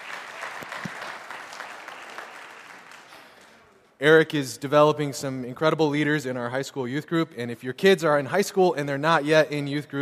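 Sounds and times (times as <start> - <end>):
audience applause: 0.0 - 3.8
speech: 4.0 - 10.0.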